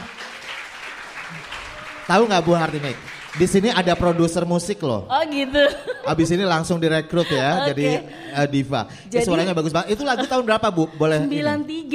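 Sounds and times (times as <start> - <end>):
audience applause: 0.0 - 4.6
speech: 1.3 - 11.9
laughter: 5.5 - 8.7, 9.3 - 11.6.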